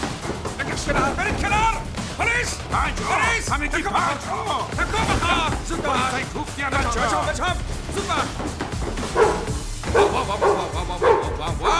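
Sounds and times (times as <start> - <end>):
laughter: 0.6 - 11.7
speech: 0.8 - 9.3, 9.9 - 11.7
dog barking during a police confrontation: 9.0 - 11.7.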